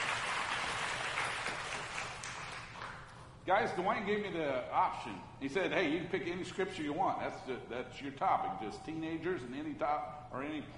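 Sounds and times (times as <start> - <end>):
crowd applause: 0.0 - 2.8
speech: 3.4 - 10.7.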